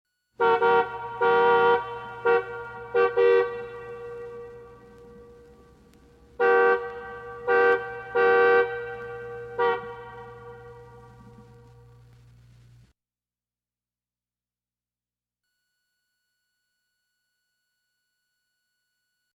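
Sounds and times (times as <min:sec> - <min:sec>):
car horn: 0:00.4 - 0:12.1.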